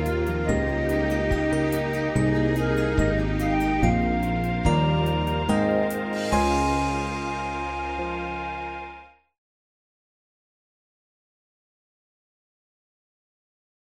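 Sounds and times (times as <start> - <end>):
easy listening and classical music: 0.0 - 9.2.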